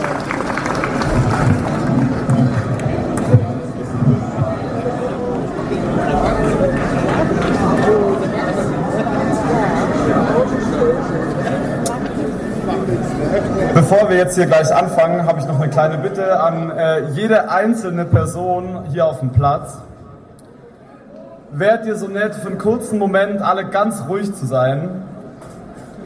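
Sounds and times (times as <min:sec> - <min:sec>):
audience applause: 0:00.0 - 0:03.8
crowd murmur and scattered voices: 0:00.0 - 0:14.4, 0:19.8 - 0:21.5, 0:25.0 - 0:26.0
speech: 0:14.1 - 0:19.9, 0:21.6 - 0:25.1.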